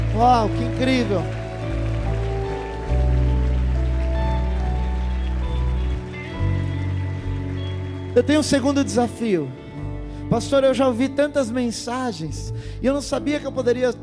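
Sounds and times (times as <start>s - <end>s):
audience applauding: 0.0s - 9.8s
speech: 0.2s - 1.4s, 8.2s - 9.6s, 10.3s - 14.0s.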